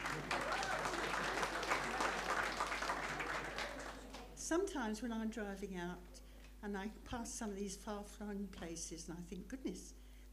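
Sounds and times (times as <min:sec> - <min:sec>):
audience clapping: 0:00.0 - 0:04.4
speech: 0:04.5 - 0:10.0.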